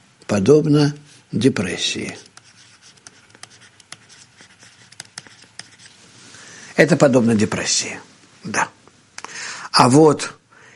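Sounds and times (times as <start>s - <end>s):
speech: 0.3s - 2.3s, 6.8s - 8.8s, 9.8s - 10.4s
symbol being written by hand: 1.0s - 6.0s.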